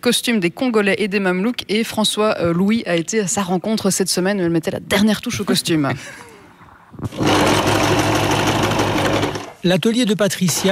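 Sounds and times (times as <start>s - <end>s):
speech: 0.0s - 6.3s, 7.0s - 8.0s, 9.6s - 10.6s
sewing machine sewing a Mamluk costume in a seamstress's salon workshop: 7.1s - 9.6s, 10.4s - 10.6s.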